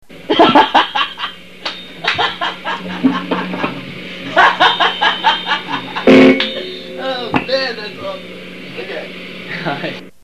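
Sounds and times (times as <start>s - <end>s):
person laughing: 0.3s - 1.3s, 2.0s - 6.8s.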